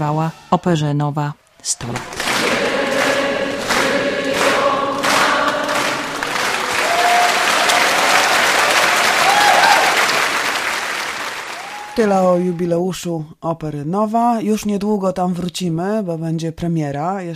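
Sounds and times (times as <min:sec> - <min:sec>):
speech: 0:00.0 - 0:02.2, 0:12.0 - 0:17.3
standing ovation applause: 0:01.9 - 0:12.7.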